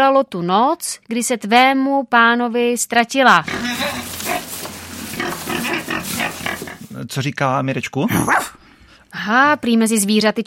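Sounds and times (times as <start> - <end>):
speech: 0.0 - 4.0, 7.0 - 10.4
pig grunting and snorting: 3.3 - 7.0.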